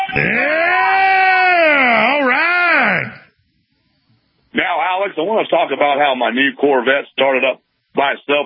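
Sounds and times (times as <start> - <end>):
man screaming a battle scream: 0.1 - 3.3
speech: 5.1 - 8.4.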